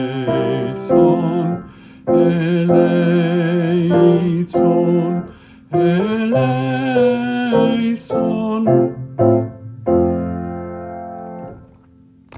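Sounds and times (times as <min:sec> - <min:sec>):
bass voice singing a Kyrie practice part: 0:00.0 - 0:09.3.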